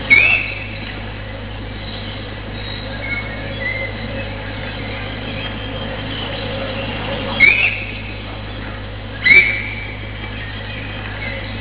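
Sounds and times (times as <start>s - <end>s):
alarm: 0.0s - 0.8s, 1.7s - 8.4s, 9.2s - 11.5s.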